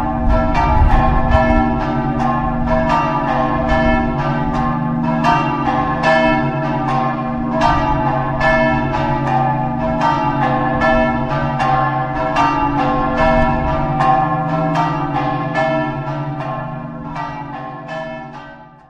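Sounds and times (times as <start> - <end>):
church bells ringing in Pavia di Udine: 0.0 - 18.8.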